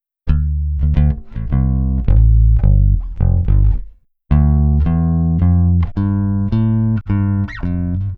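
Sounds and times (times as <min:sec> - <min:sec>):
African jazz bass: 0:00.3 - 0:08.1.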